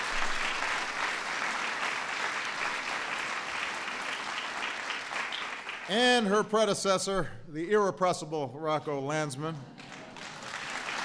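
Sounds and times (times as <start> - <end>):
audience applause: 0.0 - 5.9, 9.7 - 11.0
speech: 5.9 - 9.8.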